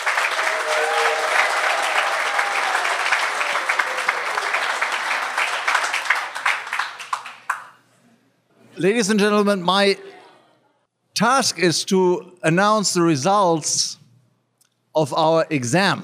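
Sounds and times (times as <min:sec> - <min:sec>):
audience applause: 0:00.0 - 0:07.8
speech: 0:08.8 - 0:10.1, 0:11.2 - 0:14.0, 0:15.0 - 0:16.0.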